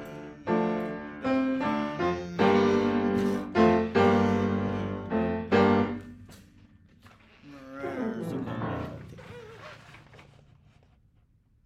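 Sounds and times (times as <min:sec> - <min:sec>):
piano accompaniment: 0:00.0 - 0:06.3.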